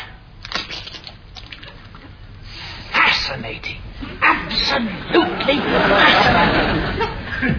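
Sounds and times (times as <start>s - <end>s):
eggs being crushed: 0.4s - 2.1s
laughter: 4.9s - 7.5s.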